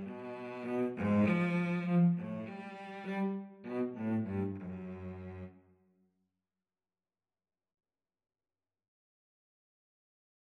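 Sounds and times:
cello duet: 0.0 - 5.7.

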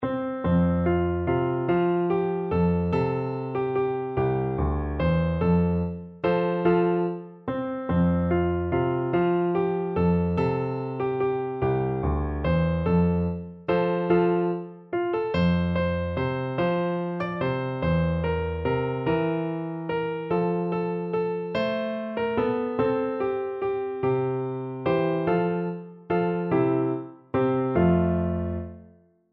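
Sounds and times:
piano: 0.0 - 29.3.

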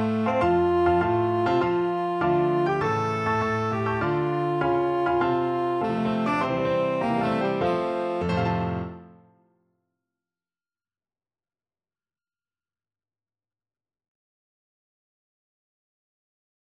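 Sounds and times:
tenor saxophone: 0.0 - 9.2.

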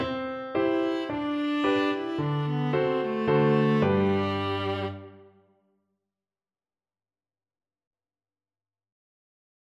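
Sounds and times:
viola: 0.0 - 5.4.

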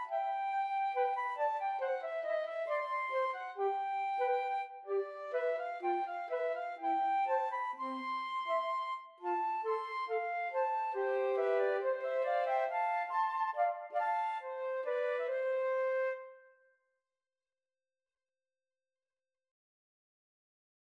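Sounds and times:
flute trio: 0.0 - 16.4.

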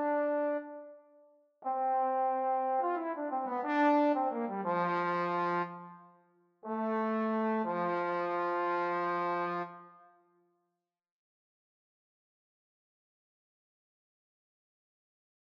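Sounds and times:
adagio trombone duet: 0.0 - 0.9, 1.6 - 6.0, 6.6 - 9.8.

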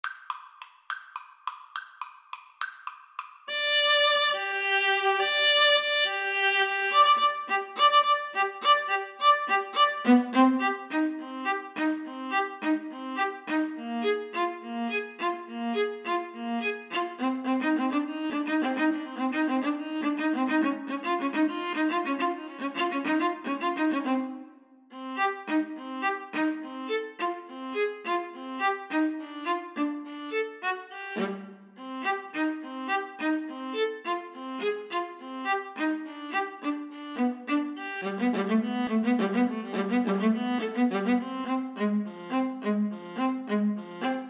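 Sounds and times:
violin and viola duet: 3.5 - 44.2.

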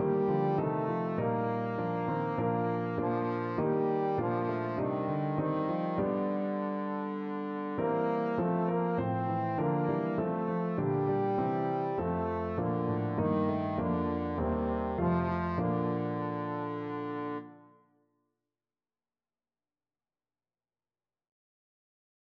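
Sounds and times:
trombone playing: 0.0 - 17.6.

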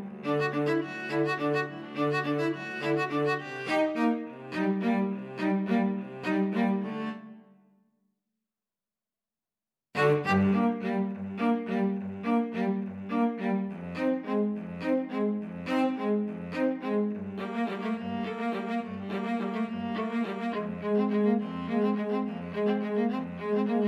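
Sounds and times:
string trio playing: 0.0 - 7.3, 10.0 - 23.8.

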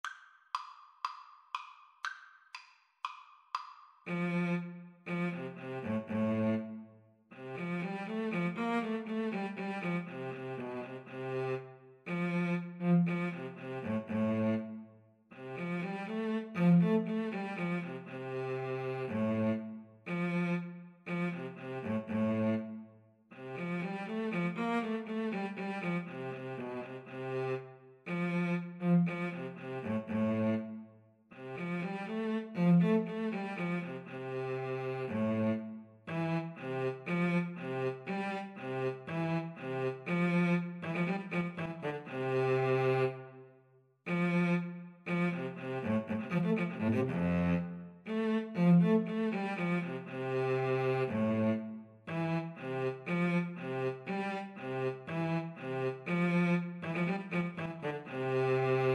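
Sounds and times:
clarinet and cello duet: 4.1 - 22.8, 23.4 - 30.8, 31.4 - 43.4, 44.1 - 58.9.

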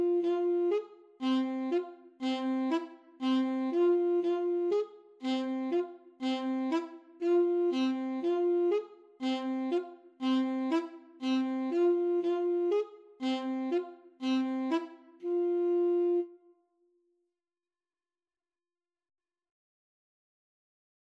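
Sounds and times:
saxophone dance tune: 0.0 - 16.3.

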